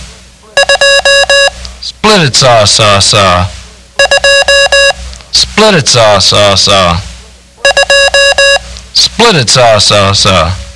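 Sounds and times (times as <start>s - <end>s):
Morse code beeps for the digit two: 0.6s - 1.6s, 4.0s - 5.0s, 7.6s - 8.7s
speech: 2.1s - 3.6s, 5.6s - 7.1s, 9.2s - 10.6s.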